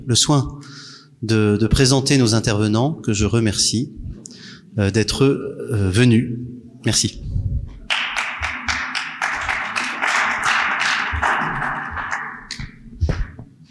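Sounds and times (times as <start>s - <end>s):
speech: 0.0s - 7.3s
audience applause: 7.9s - 12.8s.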